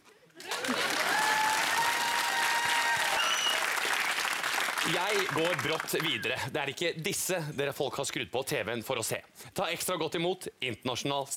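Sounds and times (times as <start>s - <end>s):
audience applause: 0.4s - 6.4s
faint tonal whistles or cheers: 1.0s - 4.2s
speech: 4.9s - 11.3s.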